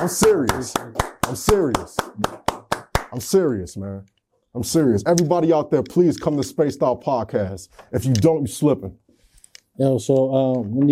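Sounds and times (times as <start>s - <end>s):
speech: 0.0s - 2.4s, 3.1s - 9.0s, 9.8s - 10.9s
people clapping: 0.0s - 3.4s.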